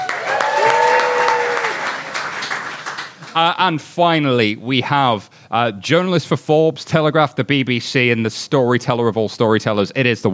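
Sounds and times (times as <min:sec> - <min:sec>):
audience round of applause: 0:00.0 - 0:03.6
speech: 0:03.4 - 0:10.3.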